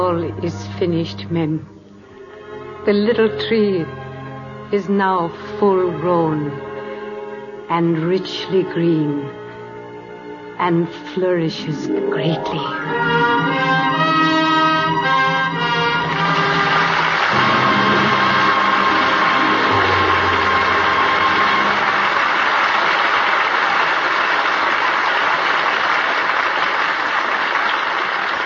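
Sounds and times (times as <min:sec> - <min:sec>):
speech: 0:00.0 - 0:01.8, 0:02.8 - 0:04.0, 0:04.7 - 0:06.7, 0:07.7 - 0:09.4, 0:10.6 - 0:14.0
closing musical chord: 0:09.9 - 0:22.7
audience applause: 0:16.0 - 0:28.4.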